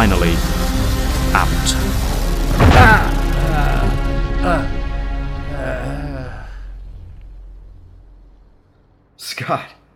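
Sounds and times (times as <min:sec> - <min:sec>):
booming energy blast: 0:00.0 - 0:04.8
person grunting and groaning: 0:02.7 - 0:04.8, 0:05.4 - 0:06.7.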